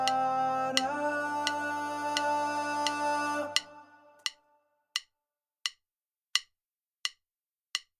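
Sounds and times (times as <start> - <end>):
soprano singing recorded at home: 0.0 - 4.2.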